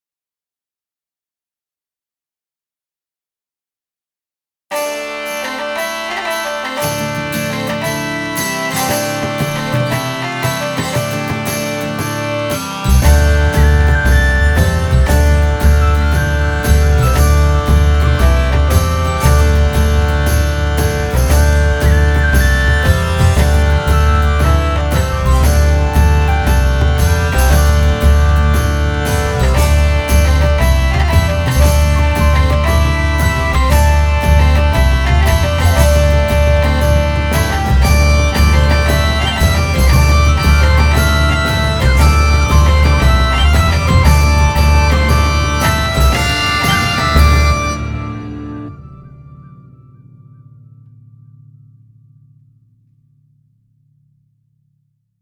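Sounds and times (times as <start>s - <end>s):
music: 4.7s - 54.1s.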